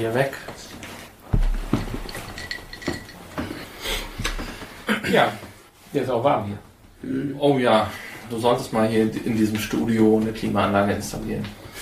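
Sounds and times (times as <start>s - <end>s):
speech: 0.0s - 0.7s, 5.1s - 11.6s
quiet handling noise: 0.6s - 4.8s
glass clinking: 1.4s - 3.8s.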